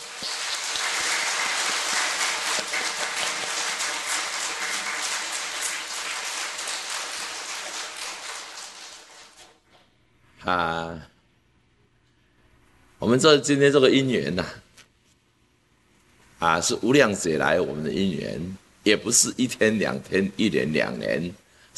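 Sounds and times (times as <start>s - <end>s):
warm applause from the audience: 0.0s - 9.6s
speech: 0.2s - 0.4s, 10.4s - 11.1s, 13.0s - 14.6s, 16.4s - 21.7s.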